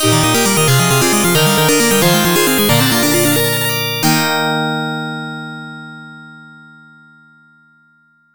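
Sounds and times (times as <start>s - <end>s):
arcade first place entry end music: 0.0s - 4.6s.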